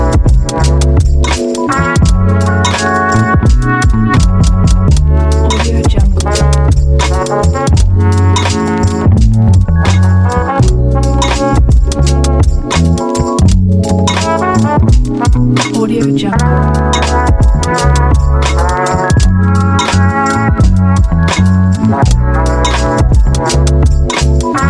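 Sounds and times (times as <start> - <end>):
autumn lofi beat: 0.0 - 24.6.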